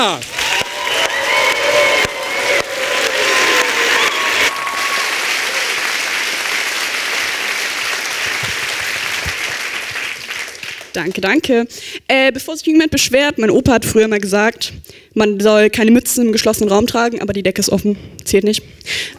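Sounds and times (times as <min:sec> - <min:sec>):
speech: 0:00.0 - 0:00.3, 0:11.0 - 0:19.0
audience applause at a poetry slam in Michelbach an der Bilz: 0:00.0 - 0:11.0
audience whoops and shouts at a poetry slam: 0:00.3 - 0:05.9.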